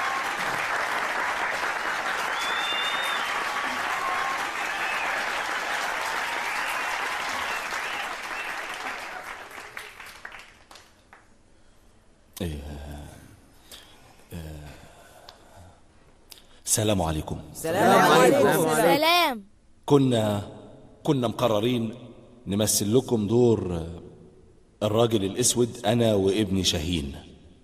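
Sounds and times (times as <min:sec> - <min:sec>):
audience applause at a school performance: 0:00.0 - 0:10.9, 0:17.6 - 0:19.0
speech: 0:12.4 - 0:12.7, 0:16.8 - 0:24.1, 0:24.8 - 0:27.3.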